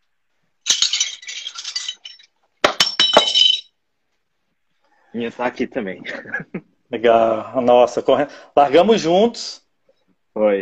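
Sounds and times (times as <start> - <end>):
hanging medal clinking as it is picked up: 0.6 - 3.8
speech: 5.1 - 9.6, 10.4 - 10.6
laughter: 6.0 - 6.8.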